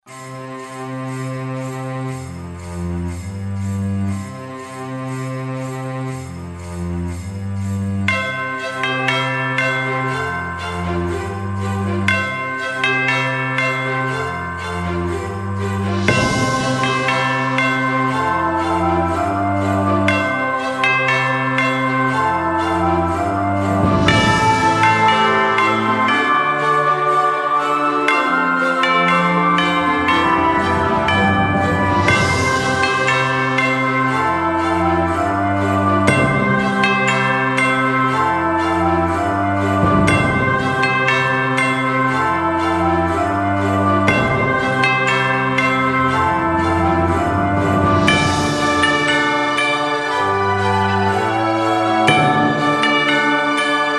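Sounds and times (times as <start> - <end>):
Christmas music: 0.0 - 53.9.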